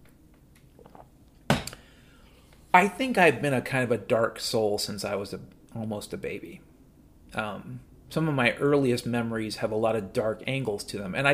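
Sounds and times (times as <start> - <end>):
person getting and drinking some water: 0.7 - 1.2
speech: 2.8 - 6.7, 7.3 - 11.3.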